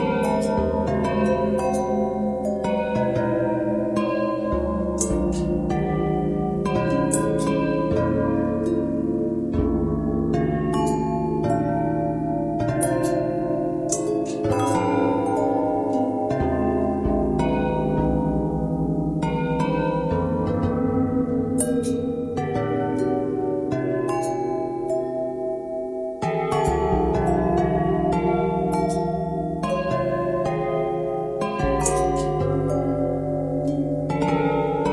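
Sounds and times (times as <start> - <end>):
long bell with pitch bend and twist: 0.0 - 34.9.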